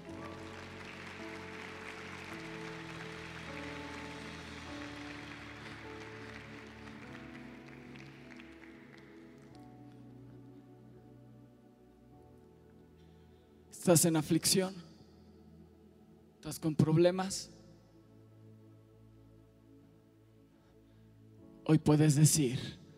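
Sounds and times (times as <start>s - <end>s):
applause: 0.0s - 10.1s
speech: 13.8s - 14.9s, 16.6s - 17.6s, 21.8s - 22.8s.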